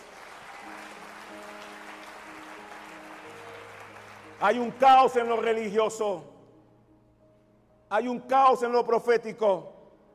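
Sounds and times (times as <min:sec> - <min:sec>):
audience clapping: 0:00.0 - 0:05.5
speech: 0:04.4 - 0:06.3, 0:07.9 - 0:09.8.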